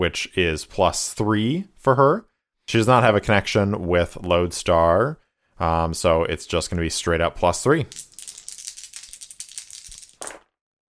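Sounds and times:
speech: 0.0s - 8.1s
dice rattling and clattering: 7.9s - 10.5s.

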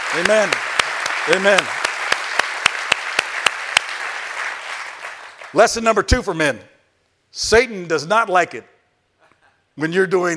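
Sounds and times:
crowd clapping hands in rhythm: 0.0s - 5.9s
speech: 0.1s - 0.7s, 1.3s - 1.8s, 5.5s - 6.7s, 7.3s - 8.7s, 9.8s - 10.3s.

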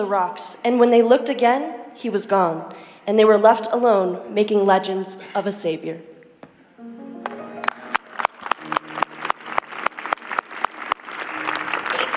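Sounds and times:
speech: 0.0s - 6.1s
audience clapping rhythmically in unison: 7.2s - 12.1s.

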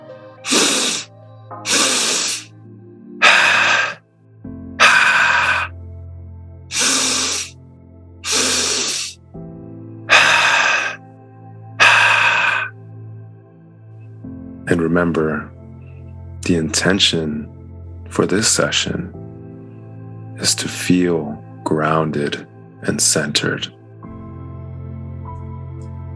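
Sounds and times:
slow deep breathwork breathing: 0.4s - 1.1s, 1.7s - 2.5s, 3.2s - 5.9s, 6.7s - 7.6s, 8.2s - 9.2s, 9.8s - 11.1s, 11.7s - 12.9s
speech: 1.5s - 1.8s, 14.7s - 15.6s, 16.5s - 17.6s, 18.2s - 19.2s, 20.4s - 23.8s.

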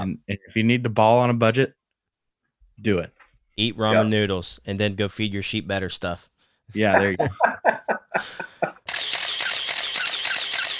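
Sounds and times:
speech: 0.0s - 1.8s, 2.8s - 7.5s, 8.2s - 8.5s
laughter: 6.8s - 8.9s
camera shutter clicks: 8.9s - 10.7s.

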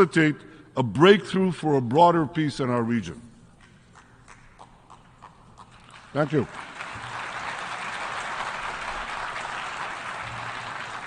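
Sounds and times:
speech: 0.0s - 3.3s, 6.1s - 6.7s
audience applause: 5.9s - 11.0s.

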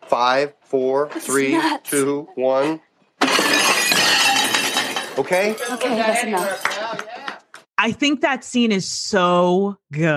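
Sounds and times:
speech: 0.2s - 2.9s, 5.2s - 7.1s, 7.8s - 10.1s
waiter's tray of dishes dropped and shattering: 3.2s - 5.9s.

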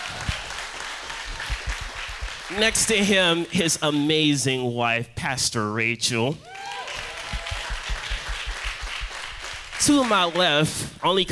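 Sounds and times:
audience applause: 0.0s - 4.0s, 6.4s - 10.7s
speech: 2.5s - 6.5s, 9.8s - 11.2s.

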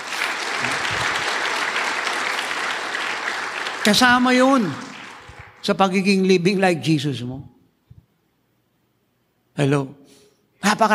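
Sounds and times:
audience applause: 0.0s - 5.6s
speech: 3.9s - 4.9s, 5.6s - 7.5s, 9.6s - 10.9s.

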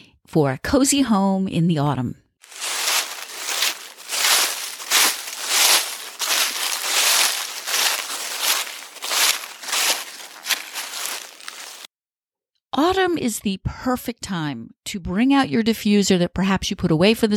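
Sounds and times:
speech: 0.4s - 2.2s, 13.0s - 17.3s
footsteps crunching over dry autumn leaves: 2.4s - 11.9s.

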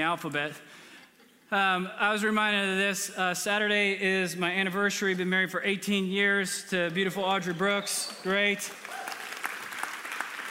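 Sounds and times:
speech: 0.0s - 0.8s, 1.5s - 9.0s
audience applause: 8.1s - 10.4s.

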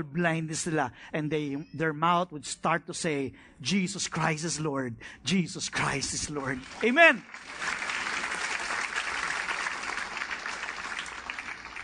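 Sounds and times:
speech: 0.0s - 7.9s
audience clapping hands in praise: 6.3s - 11.8s.

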